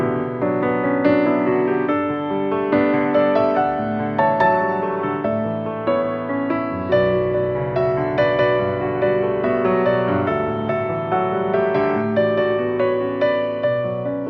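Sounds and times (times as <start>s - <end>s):
piano ballad: 0.0s - 14.2s.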